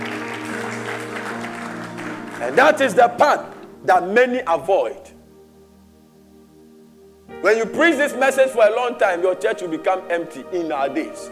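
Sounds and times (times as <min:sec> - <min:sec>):
audience clapping: 0:00.0 - 0:03.7
speech: 0:02.5 - 0:05.1, 0:07.3 - 0:11.3.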